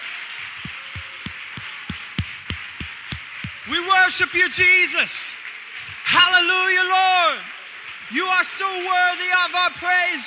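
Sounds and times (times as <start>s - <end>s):
hand clapping: 0.0s - 6.5s
speech: 3.7s - 5.4s, 6.1s - 10.2s.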